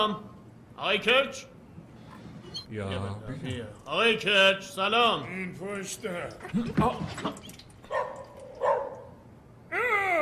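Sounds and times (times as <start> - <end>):
speech: 0.0 - 1.5, 2.7 - 8.1
dog barking and yelping while jumping on a man: 7.9 - 9.1.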